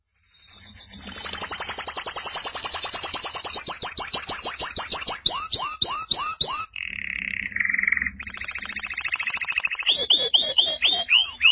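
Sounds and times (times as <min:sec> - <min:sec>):
canary singing sweeping notes: 0:01.0 - 0:11.5.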